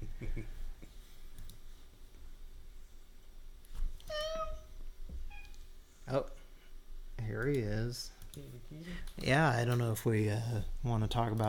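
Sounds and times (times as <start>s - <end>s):
cat meowing: 4.1s - 4.7s
speech: 6.1s - 6.4s, 7.4s - 11.4s.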